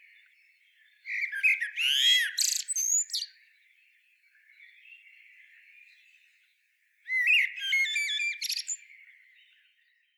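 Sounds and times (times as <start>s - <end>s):
common blackbird singing: 1.0s - 3.3s, 7.1s - 9.6s.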